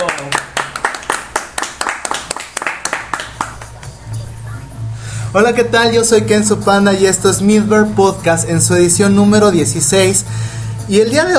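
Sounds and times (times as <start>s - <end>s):
applause: 0.0s - 3.9s
speech: 5.4s - 11.3s.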